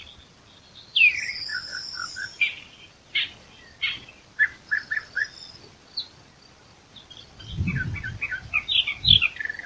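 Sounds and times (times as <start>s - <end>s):
Eastern Orphean Warbler Sylvia crassirostris singing: 0.0s - 9.6s.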